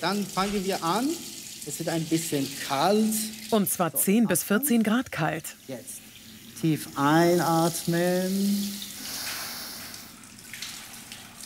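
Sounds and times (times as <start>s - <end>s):
speech: 0.0s - 6.0s, 6.6s - 8.9s
cold water jet poured over leg: 7.6s - 11.4s.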